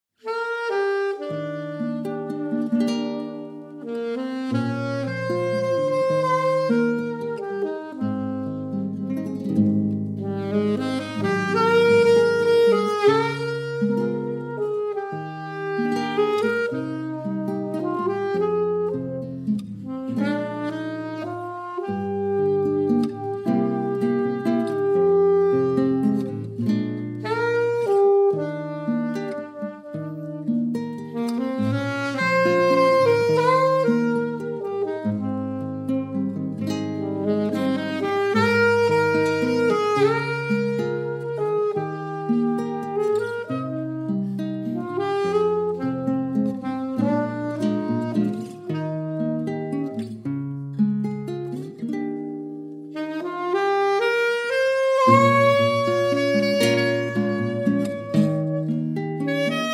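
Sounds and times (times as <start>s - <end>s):
jazz duet: 0.2s - 59.7s.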